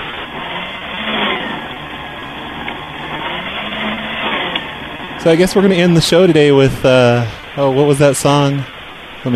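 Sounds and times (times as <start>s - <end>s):
paper shredder running heard over the phone: 0.0s - 5.7s
speech: 5.2s - 9.3s.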